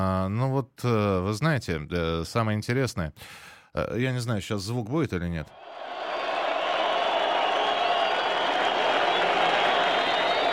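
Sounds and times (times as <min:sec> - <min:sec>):
speech: 0:00.0 - 0:06.1
archival crowd applause: 0:05.6 - 0:10.5.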